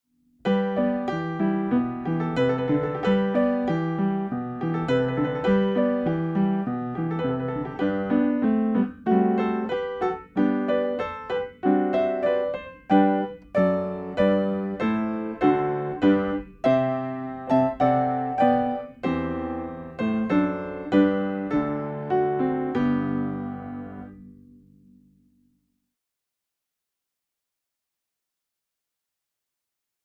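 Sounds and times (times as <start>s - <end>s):
musical accompaniment: 0.5s - 24.4s.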